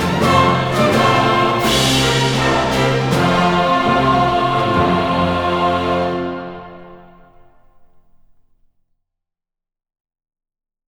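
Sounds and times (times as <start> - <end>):
choir singing: 0.0 - 8.0
full orchestra: 0.0 - 8.0.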